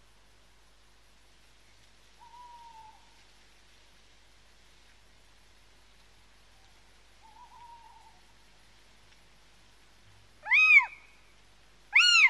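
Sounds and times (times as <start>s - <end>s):
little owl mewing call rising and falling: 2.2s - 3.0s, 7.2s - 8.2s, 10.4s - 11.1s, 11.9s - 12.2s.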